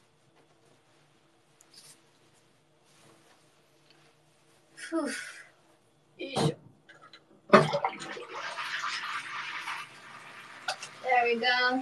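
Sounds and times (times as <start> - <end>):
speech: 4.9 - 5.4
water draining down a plughole after the plug is pulled: 7.5 - 11.1.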